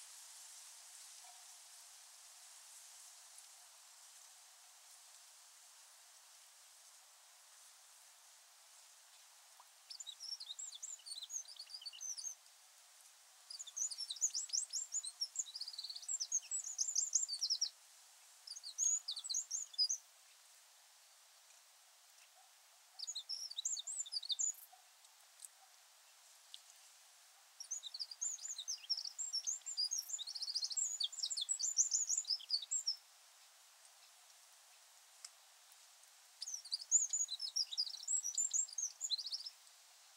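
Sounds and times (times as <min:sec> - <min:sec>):
soft background hiss: 0:00.0 - 0:40.1
Eurasian wren singing: 0:09.9 - 0:12.4, 0:13.5 - 0:17.7, 0:18.5 - 0:20.0, 0:22.9 - 0:24.8, 0:27.6 - 0:33.0, 0:36.4 - 0:39.6.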